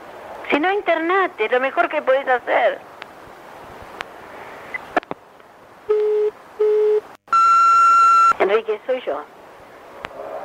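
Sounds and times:
faint hiss: 0.0s - 10.4s
speech: 0.5s - 2.9s, 8.6s - 9.4s
telephone tones from an unanswered call: 5.9s - 8.4s.

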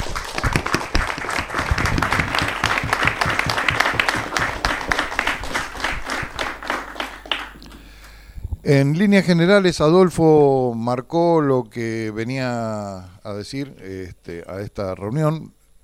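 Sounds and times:
audience applause: 0.0s - 8.0s
speech: 8.7s - 15.6s.

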